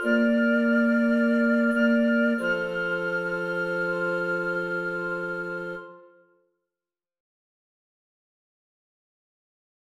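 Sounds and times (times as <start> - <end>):
flute ensemble playing an oratorio chorus: 0.0 - 6.3.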